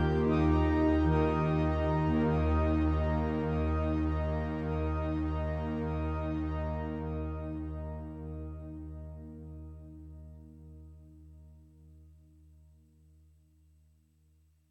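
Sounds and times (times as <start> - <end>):
synthesizer pad with two cyclically alternating harmonics from an LFO: 0.0 - 10.6.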